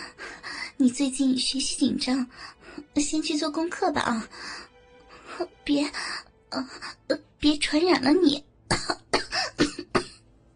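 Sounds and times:
speech: 0.8s - 4.7s, 5.4s - 9.0s
coughing: 8.7s - 10.2s.

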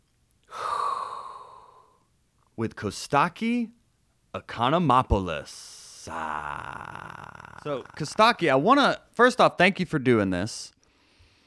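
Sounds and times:
deep inhaled breath: 0.5s - 2.0s, 10.8s - 11.4s
speech: 2.6s - 3.8s, 4.4s - 10.8s.

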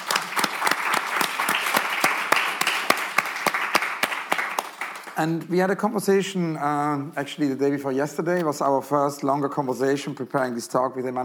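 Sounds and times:
audience applause: 0.0s - 5.4s
speech: 5.2s - 11.2s.

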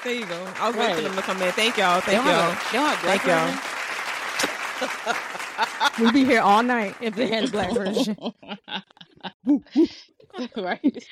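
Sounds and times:
speech: 0.0s - 3.7s, 4.8s - 11.1s
round of applause: 0.0s - 8.1s
laughter: 0.6s - 3.6s, 4.4s - 11.1s.

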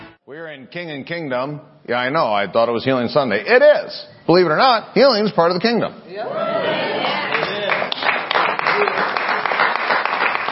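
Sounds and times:
speech: 0.3s - 6.9s
audience applause: 6.9s - 10.4s.

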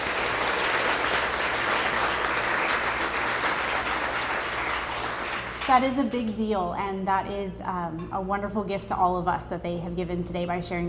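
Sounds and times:
audience applause: 0.0s - 5.7s
speech: 5.7s - 10.8s.

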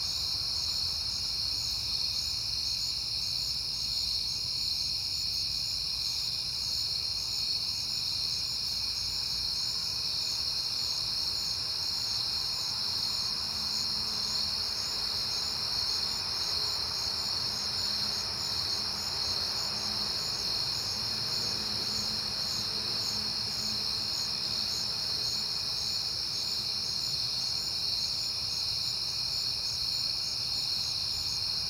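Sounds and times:
crickets trilling in a chorus: 0.0s - 31.6s.

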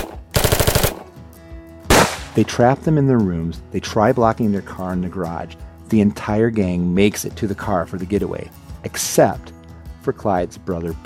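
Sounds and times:
gunfire in a shootout: 0.0s - 1.1s, 1.9s - 2.4s
speech: 2.4s - 11.0s.

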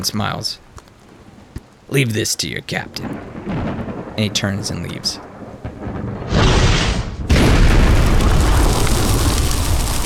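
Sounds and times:
speech: 0.0s - 0.7s, 1.9s - 5.3s
scorching fiery blast explosion from a magical inferno: 5.6s - 10.0s.

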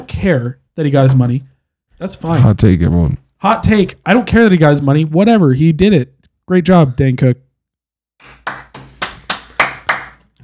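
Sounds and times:
speech: 0.2s - 7.5s
person clapping hands: 8.2s - 10.4s.

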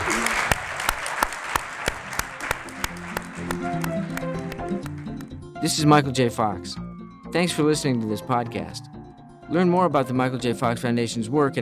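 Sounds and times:
audience applause: 0.0s - 4.7s
speech: 5.6s - 8.9s, 9.5s - 11.6s.

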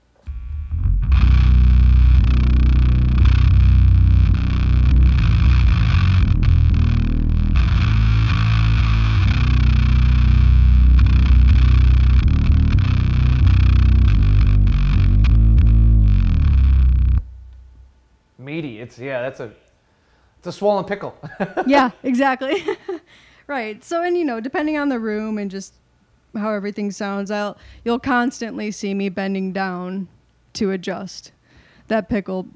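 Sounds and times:
electric guitar through fuzz pedal playing heavy low-end chords: 0.0s - 17.7s
speech: 19.0s - 19.7s, 20.4s - 32.5s.

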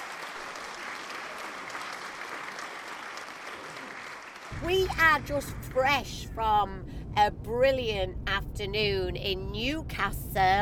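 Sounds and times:
audience applauding: 0.0s - 4.6s
speech: 4.5s - 10.6s.

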